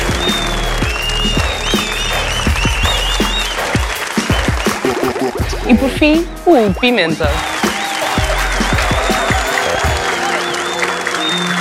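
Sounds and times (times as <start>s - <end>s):
audience applause: 0.0s - 11.5s
speech: 5.8s - 7.5s.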